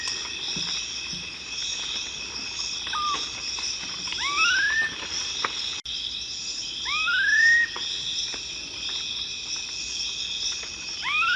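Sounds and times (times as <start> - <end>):
insect noise: 0.0 - 11.3
Black-faced cotinga whistles: 4.2 - 5.0, 6.9 - 7.8, 11.0 - 11.3.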